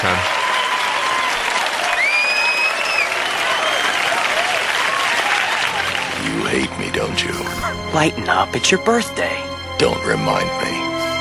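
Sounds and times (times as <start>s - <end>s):
speech: 0.0s - 0.3s, 7.0s - 10.9s
crowd noise: 0.0s - 6.4s
recorded audience applause: 0.0s - 7.4s
high whistle: 1.9s - 4.2s.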